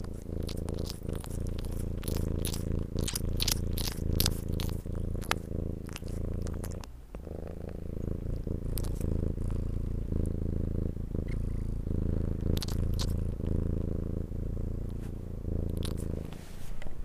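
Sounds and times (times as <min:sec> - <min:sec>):
cat purring: 0:00.0 - 0:17.0.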